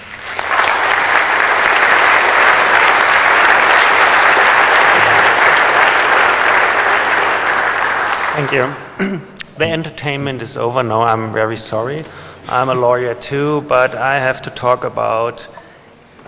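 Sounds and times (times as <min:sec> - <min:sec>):
audience applause welcoming a speaker: 0:00.0 - 0:09.0
speech: 0:08.4 - 0:15.6.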